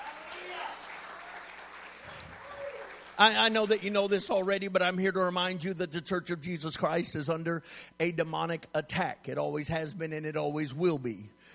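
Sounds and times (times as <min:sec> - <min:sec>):
audience clapping: 0:00.0 - 0:03.9
speech: 0:03.2 - 0:11.5.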